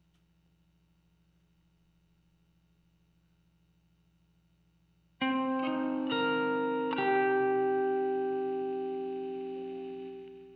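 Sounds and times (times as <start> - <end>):
guitar texture: 5.2 - 10.5.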